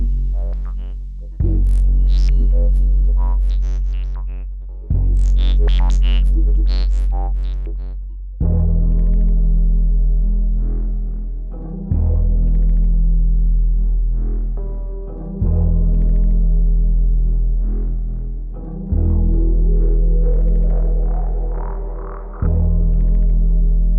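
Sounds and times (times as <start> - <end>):
bass: 0.0 - 23.9.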